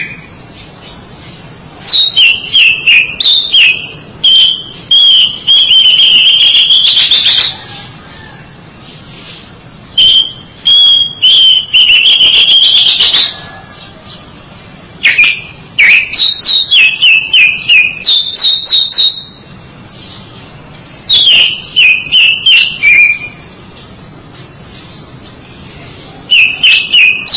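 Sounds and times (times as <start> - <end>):
Oriental magpie-robin whistled song: 0.0 - 0.7, 1.8 - 7.9, 9.9 - 14.2, 15.0 - 20.4, 21.0 - 23.9, 26.0 - 27.3.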